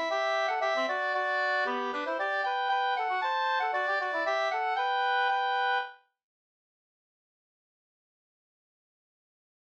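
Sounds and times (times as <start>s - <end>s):
polka music: 0.0s - 6.0s.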